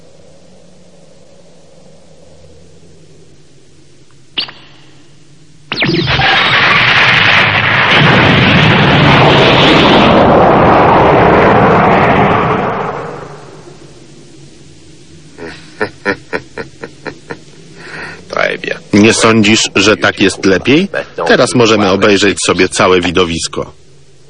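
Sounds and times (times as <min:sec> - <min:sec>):
rock blasted apart in a huge roaring explosion: 0:05.7 - 0:13.8
laughter: 0:15.4 - 0:17.6, 0:19.5 - 0:21.5
speech: 0:19.1 - 0:23.8.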